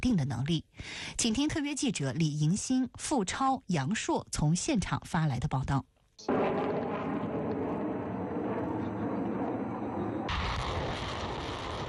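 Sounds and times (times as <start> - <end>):
speech: 0.0 - 6.4
artillery fire during a live-fire military exercise: 6.3 - 11.8.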